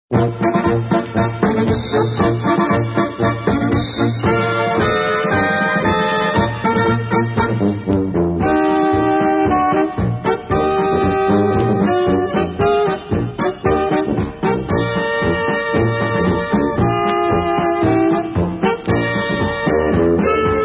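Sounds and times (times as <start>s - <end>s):
polka band playing: 0.1s - 20.6s.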